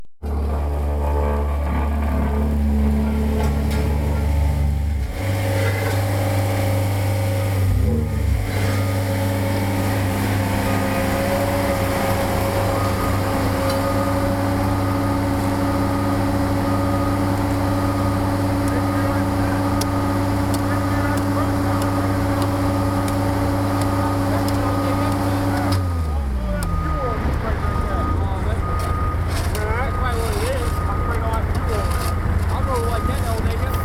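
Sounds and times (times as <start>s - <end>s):
steamroller: 0.2s - 33.8s.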